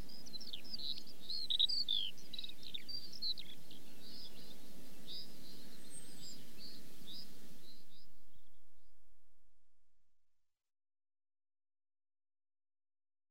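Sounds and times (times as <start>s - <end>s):
British Eurasian skylark singing: 0.0s - 9.1s.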